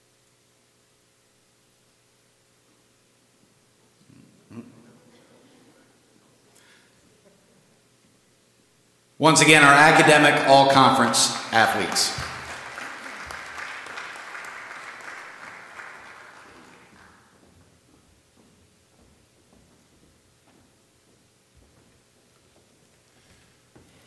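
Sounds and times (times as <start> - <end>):
speech: 9.2 - 12.3
audience applause: 9.4 - 17.3.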